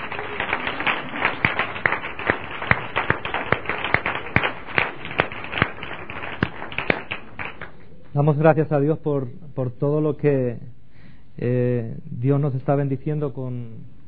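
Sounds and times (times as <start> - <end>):
audience applause: 0.0 - 7.8
speech: 8.2 - 10.7, 11.4 - 13.9.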